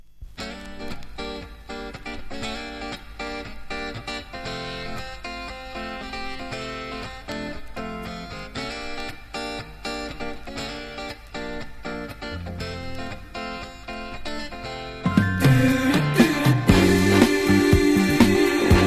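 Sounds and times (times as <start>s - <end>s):
chorus singing: 15.2s - 18.8s.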